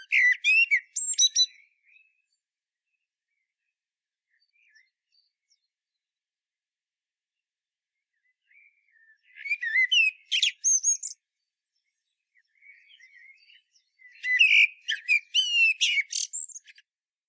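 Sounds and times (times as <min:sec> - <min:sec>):
common blackbird singing: 0:00.0 - 0:02.4, 0:08.2 - 0:11.2, 0:12.4 - 0:16.8.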